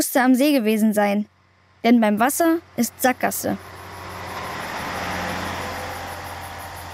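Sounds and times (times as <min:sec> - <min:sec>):
speech: 0:00.0 - 0:03.8
van driving past: 0:01.3 - 0:06.9.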